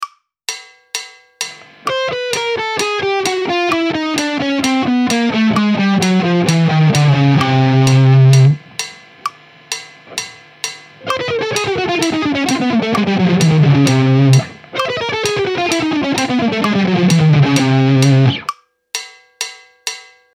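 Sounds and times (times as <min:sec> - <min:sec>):
descending chromatic scale from C: 0:01.6 - 0:08.8, 0:10.0 - 0:18.5.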